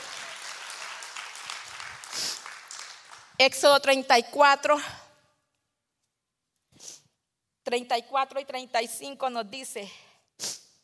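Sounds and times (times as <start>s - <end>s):
audience applause: 0.0s - 3.4s
speech: 3.4s - 5.0s, 7.7s - 10.0s.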